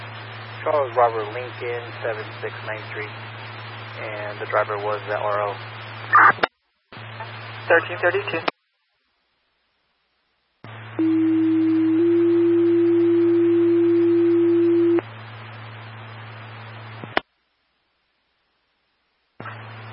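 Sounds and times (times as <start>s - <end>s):
speech: 0.6s - 3.3s, 4.0s - 6.5s, 7.7s - 8.5s
fire department mutual aid dispatch tones: 11.0s - 15.0s.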